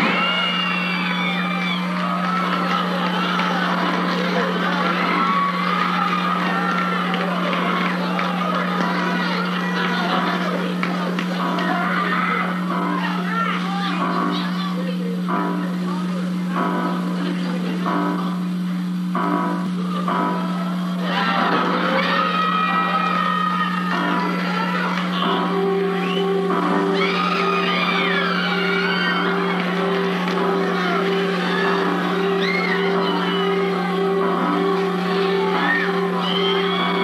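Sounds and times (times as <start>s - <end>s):
1970s cinema audience shouting and whooping at a screening of Halloween: 0.0s - 14.7s, 19.8s - 37.0s
steady low electrical hum: 0.0s - 37.0s
laughter: 1.2s - 16.4s, 17.0s - 18.4s, 19.8s - 26.2s.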